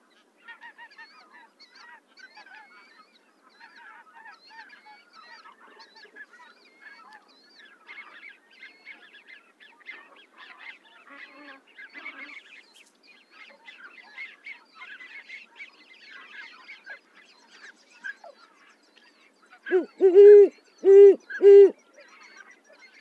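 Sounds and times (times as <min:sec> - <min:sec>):
owl: 0:19.7 - 0:21.7.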